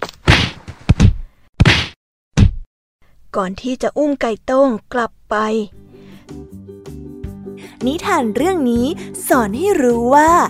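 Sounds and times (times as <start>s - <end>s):
whacking blows of a beating: 0.0s - 2.7s
speech: 3.4s - 5.8s, 7.8s - 10.4s.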